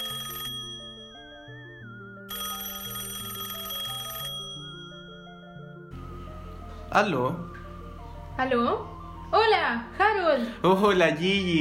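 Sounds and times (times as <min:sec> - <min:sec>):
telephone ringing with a melodic electronic ringtone: 0:00.0 - 0:06.0
speech: 0:06.9 - 0:07.6, 0:08.4 - 0:11.5.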